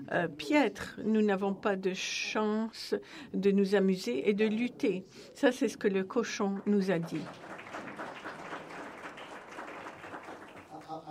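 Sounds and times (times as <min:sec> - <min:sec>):
speech: 0:00.1 - 0:07.6
audience applause: 0:06.6 - 0:11.0.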